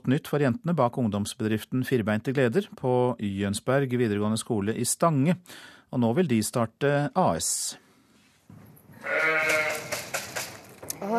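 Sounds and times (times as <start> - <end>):
speech: 0.1 - 7.8, 9.0 - 9.9, 11.0 - 11.1
sheep bleating in a barn: 8.9 - 10.0.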